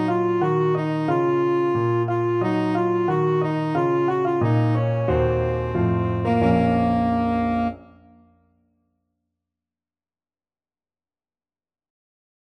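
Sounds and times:
old French melody: 0.0s - 8.3s.

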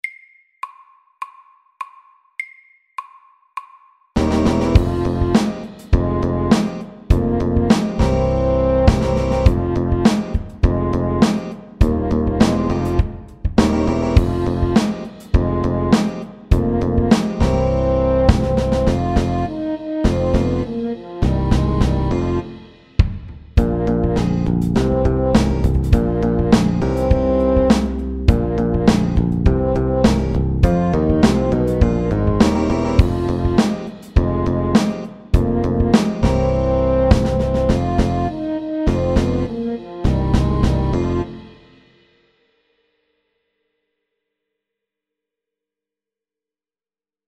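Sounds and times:
funky music: 4.2s - 41.7s.

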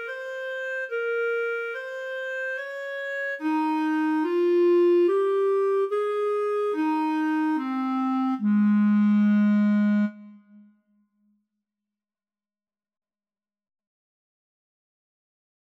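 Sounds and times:
slow legato etude: 0.0s - 10.7s.

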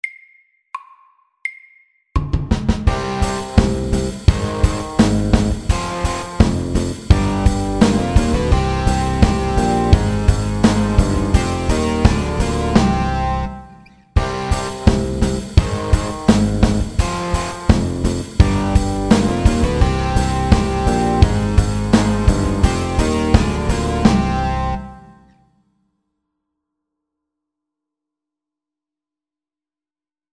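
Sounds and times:
medium mini rock music at 85: 2.7s - 25.3s.

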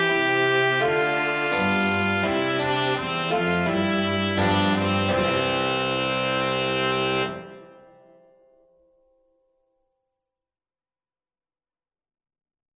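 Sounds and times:
slow march music: 0.0s - 8.2s.

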